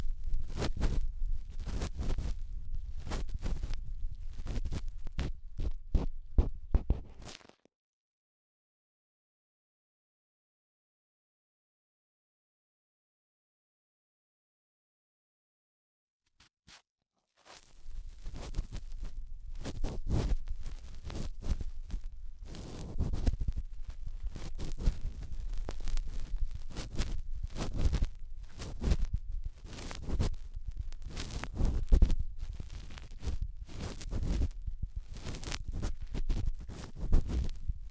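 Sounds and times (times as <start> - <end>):
cotton swab rubbing deep inside the right ear: 0.0 - 7.3, 17.8 - 37.9.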